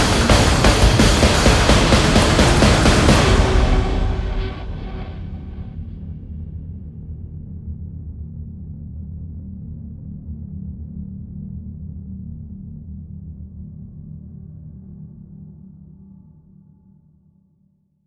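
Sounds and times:
guitar: 0:00.0 - 0:05.9.

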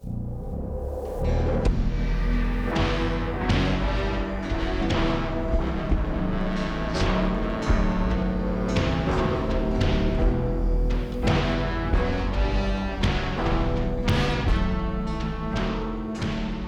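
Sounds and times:
horn interlude: 0:01.2 - 0:16.6.

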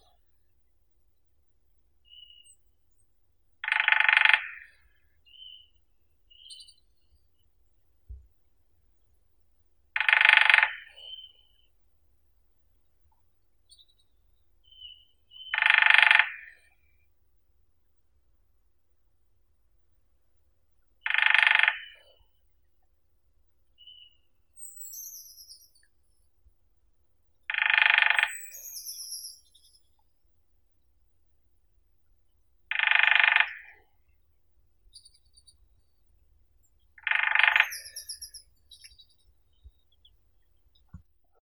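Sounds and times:
lesser spotted woodpecker Dendrocopos minor: 0:03.6 - 0:05.6, 0:10.0 - 0:11.5, 0:14.8 - 0:16.8, 0:21.0 - 0:22.2, 0:23.9 - 0:26.0, 0:27.5 - 0:30.0, 0:32.7 - 0:34.2, 0:34.8 - 0:35.9, 0:36.6 - 0:41.0.

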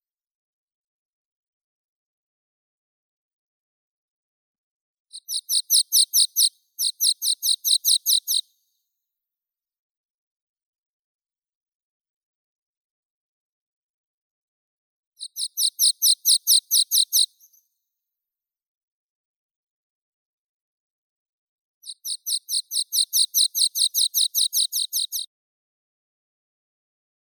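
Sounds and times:
water pipit Anthus spinoletta: 0:05.1 - 0:08.7, 0:15.2 - 0:17.7, 0:21.8 - 0:25.3.

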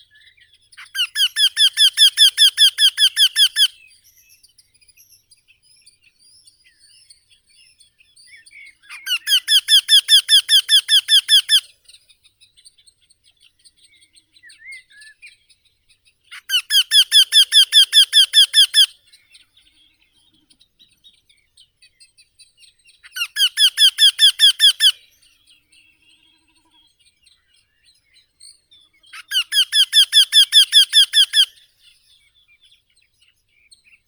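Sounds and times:
Eurasian wryneck Jynx torquilla calling: 0:00.8 - 0:03.8, 0:08.9 - 0:11.7, 0:16.4 - 0:19.0, 0:23.2 - 0:25.1, 0:29.1 - 0:31.6.

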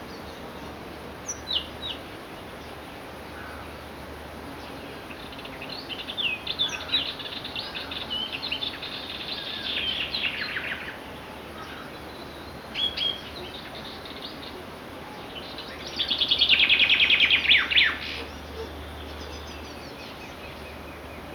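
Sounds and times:
chaffinch daytime song: 0:05.2 - 0:21.3.

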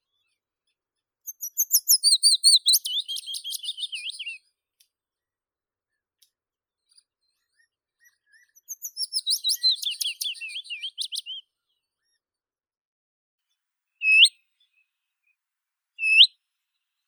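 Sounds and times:
willow warbler Phylloscopus trochilus singing: 0:01.3 - 0:04.4, 0:08.7 - 0:11.4, 0:14.0 - 0:14.3, 0:16.0 - 0:16.3.

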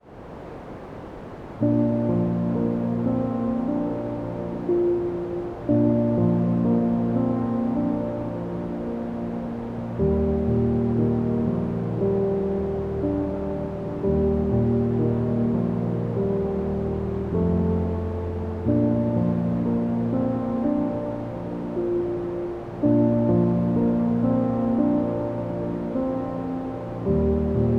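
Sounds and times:
deep sleep white noise: 0:00.0 - 0:27.7
piano: 0:01.2 - 0:27.7.

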